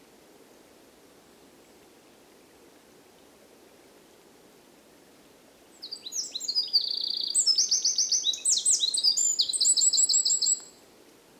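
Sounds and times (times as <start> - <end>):
soft background hiss: 0.0 - 11.3
Eurasian wren song: 5.8 - 10.8.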